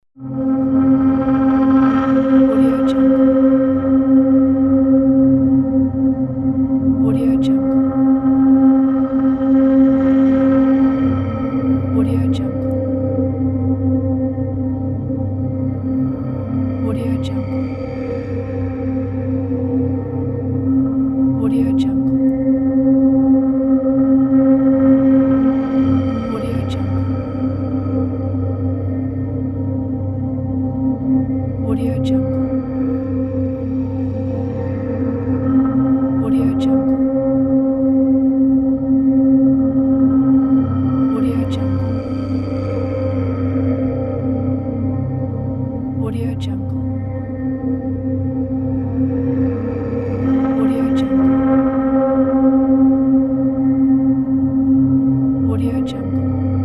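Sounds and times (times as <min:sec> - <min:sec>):
drone: 0:00.2 - 0:56.6.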